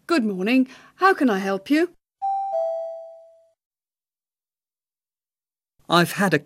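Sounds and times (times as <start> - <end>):
speech: 0.2 - 2.0, 5.9 - 6.4
electronic chime prompt tone: 2.2 - 3.6.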